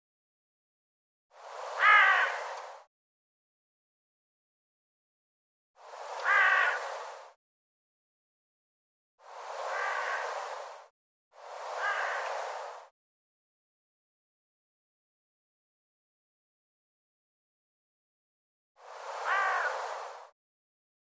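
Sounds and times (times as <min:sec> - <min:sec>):
bird rasping calls: 0:01.8 - 0:02.6, 0:06.2 - 0:06.9, 0:09.7 - 0:10.4, 0:11.8 - 0:12.4, 0:19.2 - 0:19.8.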